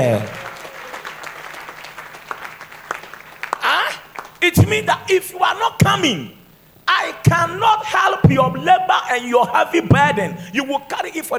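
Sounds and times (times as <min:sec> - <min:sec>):
speech: 0:00.0 - 0:00.4, 0:04.5 - 0:06.4, 0:07.0 - 0:11.3
audience applause: 0:00.0 - 0:04.4.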